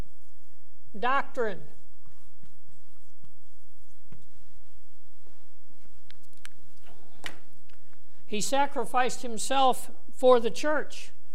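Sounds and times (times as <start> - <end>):
speech: 1.0 - 1.8, 8.3 - 11.2
writing a word on a board during a church lesson: 2.0 - 4.4.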